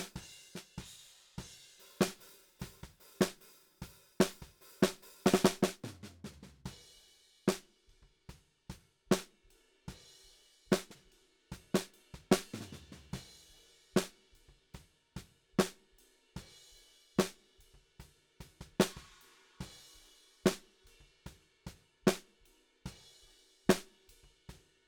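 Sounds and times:
snare drum: 0.0s - 6.7s, 9.1s - 9.4s, 10.7s - 11.0s, 11.8s - 13.2s, 18.6s - 19.8s, 20.5s - 20.7s, 22.1s - 22.3s, 23.7s - 24.0s.

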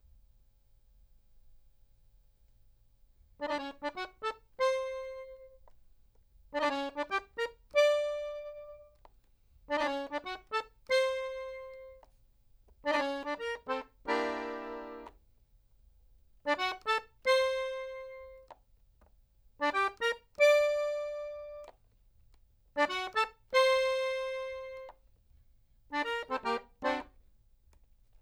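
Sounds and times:
accordion: 3.4s - 5.8s, 6.5s - 9.1s, 9.7s - 12.2s, 12.8s - 15.2s, 16.5s - 18.6s, 19.6s - 21.8s, 22.8s - 25.0s, 25.9s - 27.3s.

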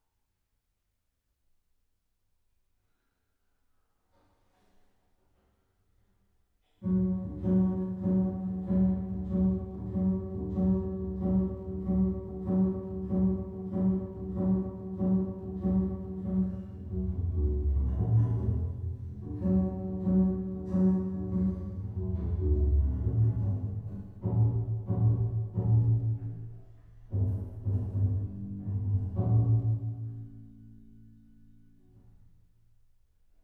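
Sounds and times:
bass: 6.8s - 33.4s.

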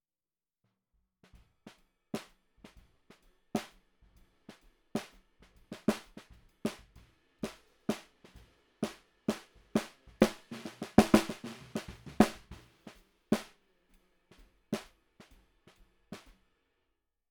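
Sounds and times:
snare drum recorded from the bottom: 1.7s - 13.6s, 14.3s - 16.4s.

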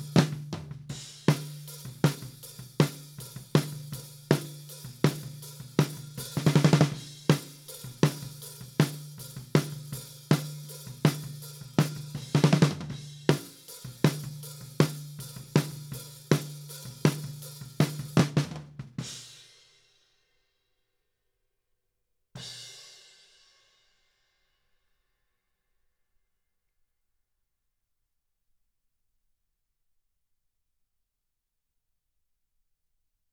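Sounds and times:
snare drum recorded from the top: 0.0s - 19.3s.

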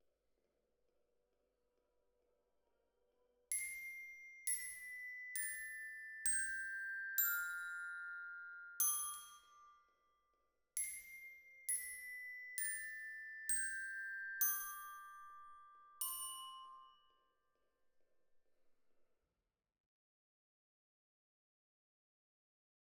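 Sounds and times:
glockenspiel: 3.5s - 10.1s, 10.8s - 17.6s.

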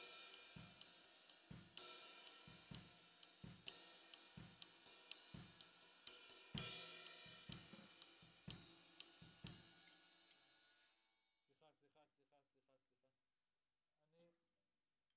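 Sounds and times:
snare drum: 0.0s - 10.1s.

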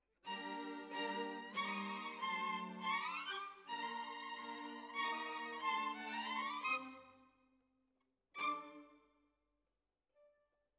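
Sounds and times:
violins: 0.3s - 7.1s, 8.4s - 9.0s.

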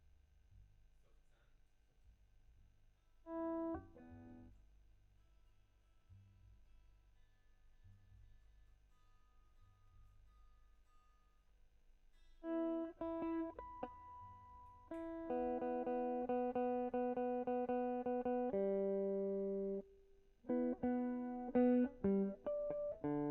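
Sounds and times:
guitar: 3.3s - 4.5s, 12.4s - 23.2s.

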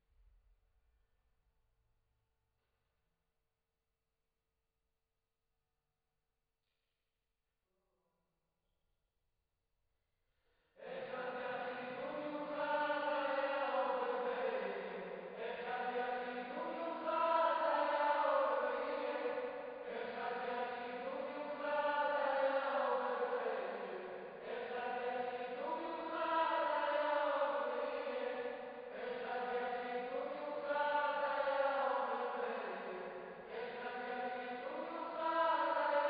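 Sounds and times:
choir singing: 10.9s - 36.0s.

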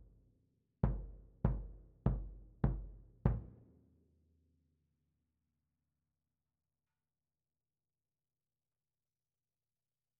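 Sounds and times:
snare drum: 0.8s - 3.5s.

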